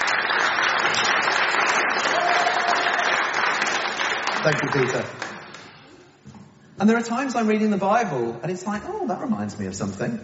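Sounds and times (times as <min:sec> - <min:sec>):
audience applause: 0:00.0 - 0:05.8
speech: 0:04.4 - 0:05.3, 0:06.8 - 0:10.2.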